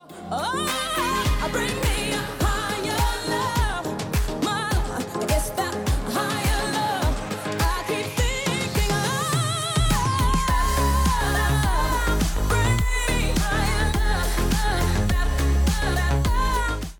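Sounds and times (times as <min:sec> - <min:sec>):
music beat: 0:00.5 - 0:16.9.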